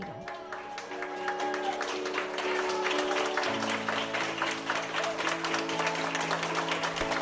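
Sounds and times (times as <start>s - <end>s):
people applauding: 0.0s - 7.1s.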